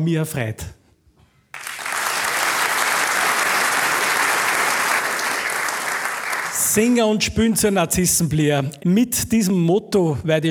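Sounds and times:
speech: 0.0 - 0.8, 6.8 - 10.4
audience applause for musicians: 1.6 - 6.8.

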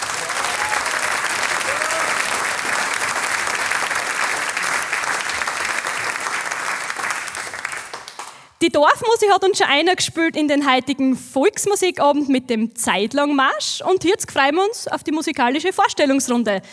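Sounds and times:
audience applause: 0.0 - 8.6
speech: 8.7 - 16.7.

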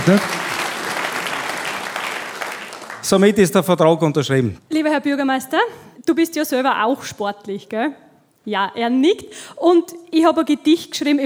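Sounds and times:
speech: 0.0 - 0.4, 3.0 - 11.2
audience applause: 0.0 - 3.5.

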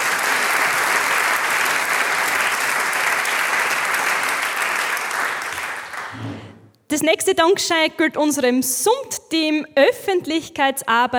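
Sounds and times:
audience applause: 0.0 - 6.7
speech: 7.0 - 11.1.

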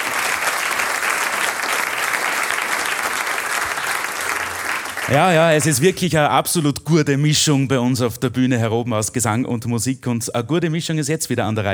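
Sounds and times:
audience applause: 0.0 - 5.8
speech: 5.1 - 11.7.

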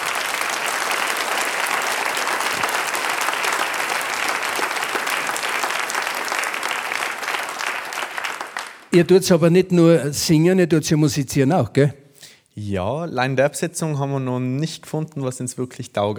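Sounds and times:
crowd clapping: 0.0 - 9.0
speech: 9.0 - 12.0, 12.6 - 16.1.

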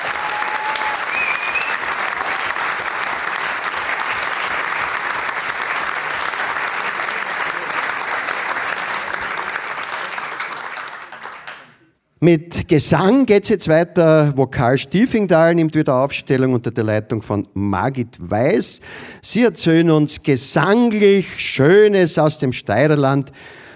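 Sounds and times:
audience applause: 0.0 - 11.9
speech: 12.2 - 23.6.

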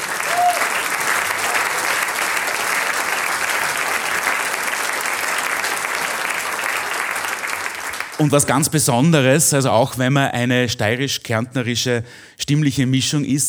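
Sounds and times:
loud sustained applause from a large audience: 0.0 - 8.8
speech: 8.2 - 13.4.

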